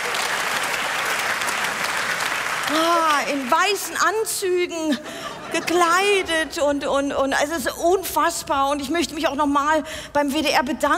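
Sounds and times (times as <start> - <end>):
audience applause: 0.0 - 4.0
speech: 2.7 - 10.9
laughter: 4.8 - 6.8.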